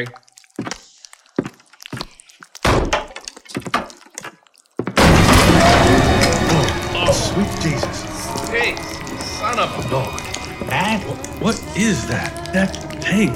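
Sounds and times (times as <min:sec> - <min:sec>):
speech: 0:00.0 - 0:00.7, 0:08.5 - 0:13.3
door being kicked open: 0:02.7 - 0:03.9, 0:05.0 - 0:07.2.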